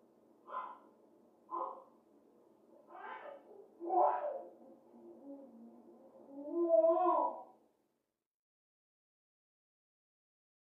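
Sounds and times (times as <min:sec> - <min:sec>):
baby cooing: 0:03.0 - 0:07.5.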